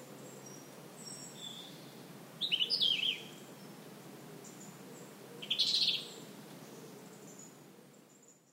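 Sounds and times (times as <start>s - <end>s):
soft background hiss: 0.0s - 8.5s
European robin singing: 0.3s - 3.7s, 5.4s - 6.2s.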